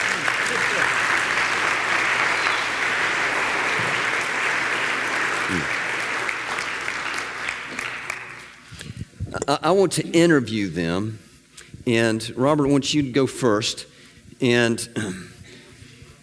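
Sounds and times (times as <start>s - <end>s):
audience applauding to welcome two guests at a morning gathering: 0.0s - 8.6s
speech: 9.5s - 11.2s, 11.9s - 15.3s.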